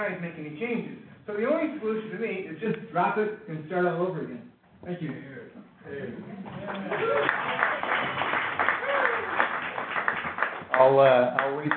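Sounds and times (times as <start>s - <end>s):
speech: 0.0s - 8.6s, 10.8s - 11.7s
audience clapping at a meeting: 6.6s - 11.7s.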